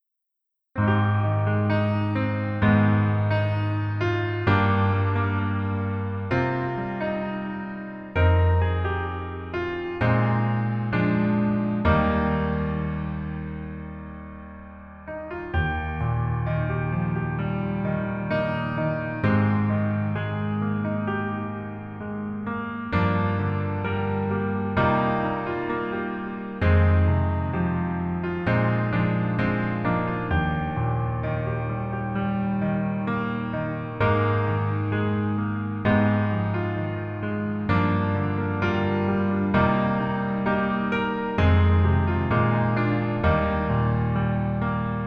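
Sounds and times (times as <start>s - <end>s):
piano melody accompaniment in male key: 0.8s - 45.0s.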